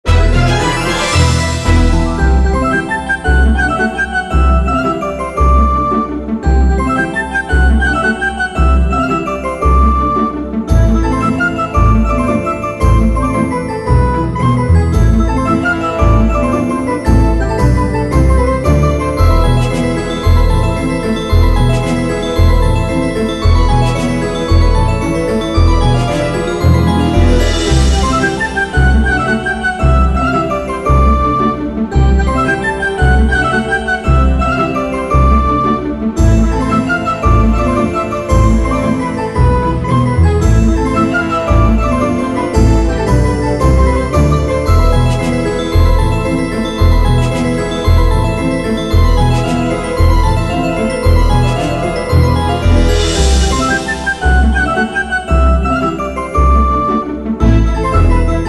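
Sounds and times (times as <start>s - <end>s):
bonus game tune: 0.1s - 58.4s.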